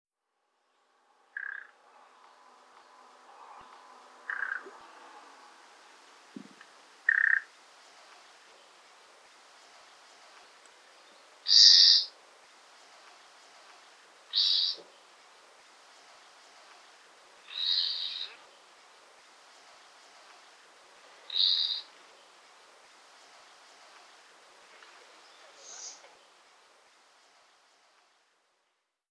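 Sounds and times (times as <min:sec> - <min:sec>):
common nightingale calls: 0:01.4 - 0:01.8, 0:03.4 - 0:04.8, 0:07.1 - 0:07.5, 0:11.0 - 0:12.2, 0:14.3 - 0:15.0, 0:17.4 - 0:18.7, 0:21.2 - 0:22.3, 0:25.2 - 0:26.3.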